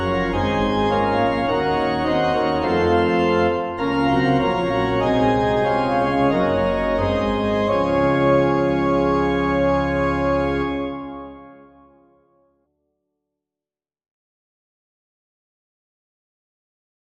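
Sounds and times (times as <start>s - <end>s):
organ playing a hymn: 0.0s - 12.3s.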